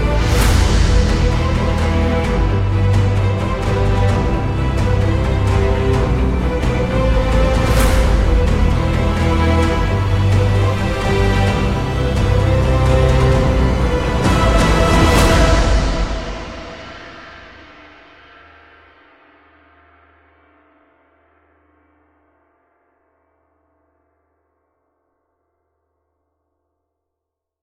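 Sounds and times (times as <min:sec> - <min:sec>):
cinematic trailer intro music: 0:00.0 - 0:18.4.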